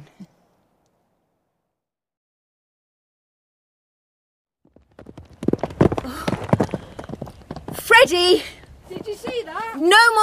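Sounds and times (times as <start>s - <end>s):
horse trotting: 4.6s - 10.2s
speech: 8.0s - 10.2s.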